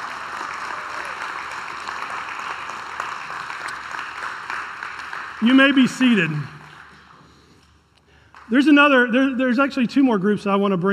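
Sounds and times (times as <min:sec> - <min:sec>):
audience round of applause: 0:00.0 - 0:07.2
speech: 0:05.4 - 0:06.5, 0:08.5 - 0:10.9.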